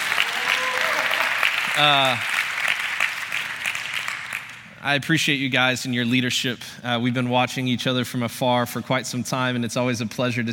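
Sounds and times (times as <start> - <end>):
audience applause: 0.0 - 4.7
speech: 1.8 - 2.3, 4.8 - 10.5.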